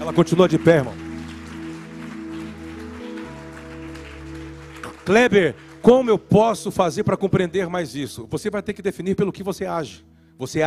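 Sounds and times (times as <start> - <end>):
audience applause: 0.0 - 6.1
sustained low keyboard chords: 0.0 - 10.6
speech: 0.1 - 1.0, 5.0 - 10.6.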